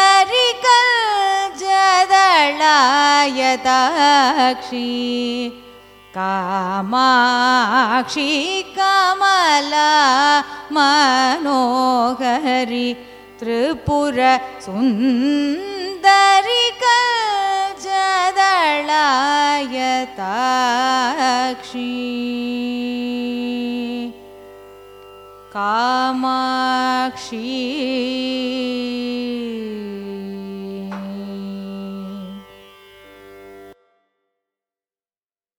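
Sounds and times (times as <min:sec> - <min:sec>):
carnatic raga music: 0:00.0 - 0:34.3.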